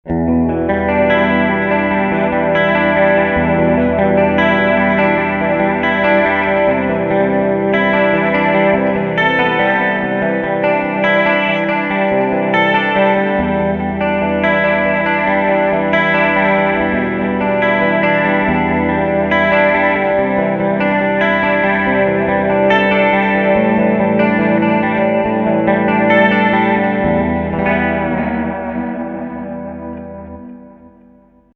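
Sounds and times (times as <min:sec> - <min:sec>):
clean delay effect: 0:00.0 - 0:31.5.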